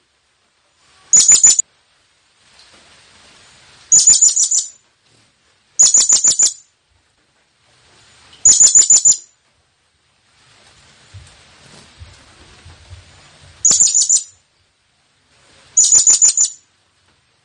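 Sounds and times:
blue-crowned hanging parrot calls: 1.1s - 1.6s, 3.9s - 4.8s, 5.8s - 6.7s, 8.4s - 9.3s, 13.6s - 14.4s, 15.8s - 16.6s.

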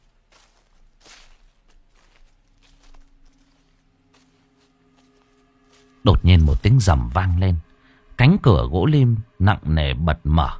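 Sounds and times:
footsteps rustling through leaves in a garden: 0.0s - 7.5s
scuffing crunch: 0.0s - 7.6s
speech: 6.0s - 10.5s.

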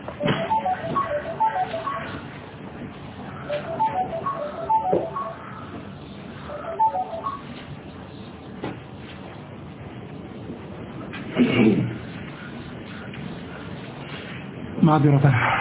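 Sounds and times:
phone ringtone chirping in short bright melodic bursts: 0.2s - 2.2s, 3.5s - 5.7s, 6.5s - 7.5s
speech: 14.9s - 15.6s.

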